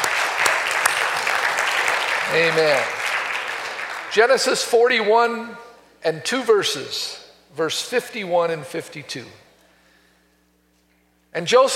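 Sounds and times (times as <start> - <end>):
audience applauding visitors: 0.0 - 4.5
speech: 2.3 - 3.0, 4.2 - 9.4, 11.3 - 11.7.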